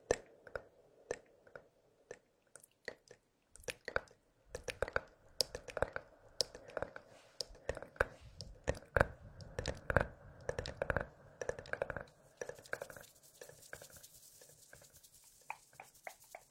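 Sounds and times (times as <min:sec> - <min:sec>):
faint steady hiss: 0:00.0 - 0:16.5
hands rubbing together: 0:12.3 - 0:16.5.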